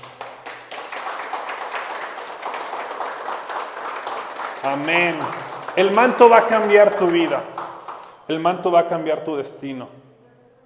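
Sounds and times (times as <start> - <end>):
audience applause: 0.0 - 8.1
speech: 4.6 - 7.5, 8.3 - 10.0.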